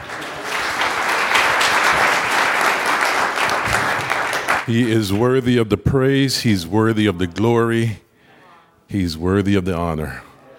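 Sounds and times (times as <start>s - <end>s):
audience clapping hands: 0.0s - 5.1s
speech: 4.7s - 8.0s, 8.9s - 10.3s.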